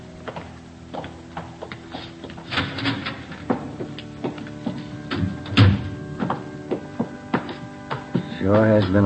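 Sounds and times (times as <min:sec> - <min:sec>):
footsteps climbing stairs to a choir loft: 0:00.2 - 0:09.0
door opening: 0:02.0 - 0:08.7
speech: 0:08.4 - 0:09.0.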